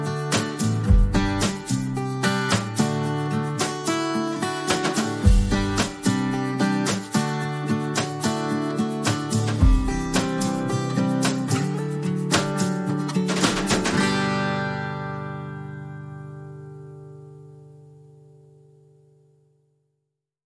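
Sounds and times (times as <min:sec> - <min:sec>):
acoustic guitars: 0:00.0 - 0:19.4
drums: 0:00.2 - 0:04.0, 0:04.6 - 0:14.3.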